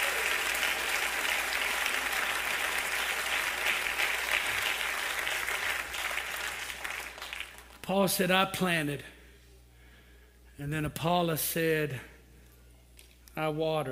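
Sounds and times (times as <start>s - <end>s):
audience clapping hands: 0.0s - 7.9s
speech: 7.9s - 9.1s, 10.6s - 12.1s, 13.4s - 13.8s.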